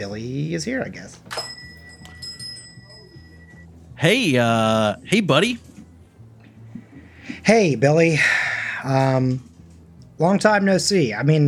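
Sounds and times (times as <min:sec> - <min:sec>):
speech: 0:00.0 - 0:01.4, 0:04.0 - 0:05.7, 0:07.4 - 0:09.5, 0:10.2 - 0:11.4
bell ringing: 0:01.3 - 0:03.7.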